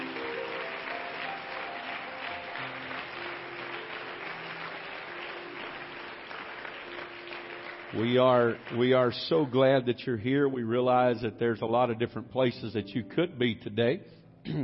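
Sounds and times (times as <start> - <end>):
church family clapping: 0.0 - 9.9
speech: 7.9 - 14.6.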